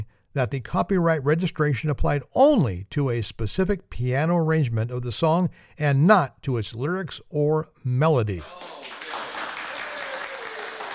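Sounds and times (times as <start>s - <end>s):
speech: 0.4s - 9.0s
crowd applause: 8.4s - 10.9s.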